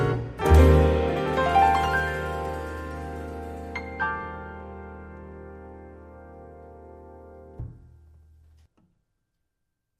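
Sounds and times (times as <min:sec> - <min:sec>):
jazz music: 0:00.0 - 0:07.5.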